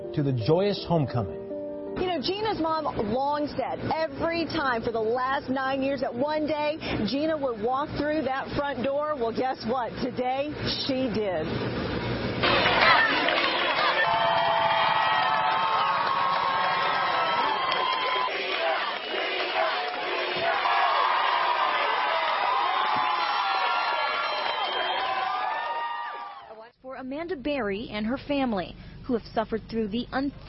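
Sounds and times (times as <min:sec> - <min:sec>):
speech: 0:00.2 - 0:01.4, 0:02.2 - 0:11.9, 0:27.3 - 0:30.4
crowd of onlookers cheering: 0:12.4 - 0:26.7.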